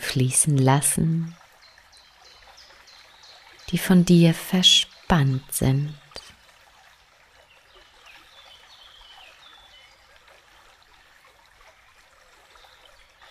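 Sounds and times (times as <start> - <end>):
trickle of flowing water beneath a guided water meditation: 0.0 - 13.2
speech: 0.1 - 1.4, 3.7 - 6.0.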